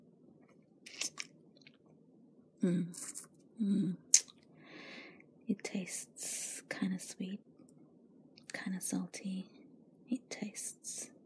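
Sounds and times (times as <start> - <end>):
wet sucking and smacking mouth sounds of someone sucking on a finger: 0.9 - 1.3
speech: 2.6 - 4.0, 5.6 - 7.5, 8.6 - 11.1.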